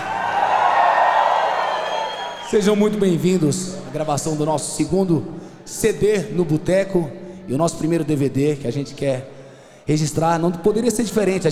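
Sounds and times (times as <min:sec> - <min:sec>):
crowd shouting and cheering: 0:00.0 - 0:04.4
speech: 0:02.5 - 0:11.5.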